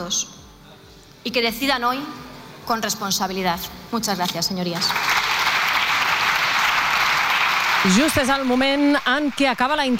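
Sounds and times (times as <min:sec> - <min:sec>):
speech: 0:00.0 - 0:00.4, 0:01.2 - 0:05.1, 0:07.8 - 0:09.9
ovation from the Socialist benches in the Spanish Congress chamber: 0:04.8 - 0:09.9.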